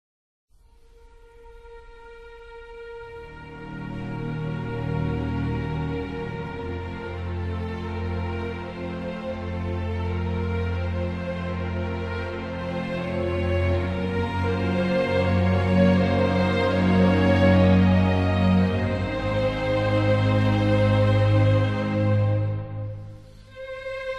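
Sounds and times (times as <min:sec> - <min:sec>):
slow piece for strings: 0:00.6 - 0:24.1.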